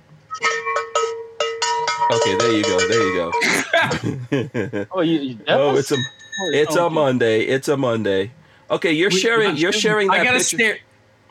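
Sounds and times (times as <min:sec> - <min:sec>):
bell ringing: 0:00.3 - 0:03.7, 0:05.5 - 0:07.2
speech: 0:02.1 - 0:11.2
laughter: 0:03.4 - 0:06.0, 0:08.9 - 0:10.7.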